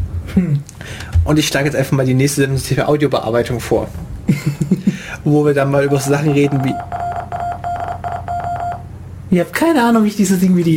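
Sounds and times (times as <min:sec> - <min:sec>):
speech: 0:00.4 - 0:07.0, 0:09.3 - 0:10.7
laughter: 0:04.3 - 0:05.1
Morse code beeps from online translator: 0:05.8 - 0:08.9.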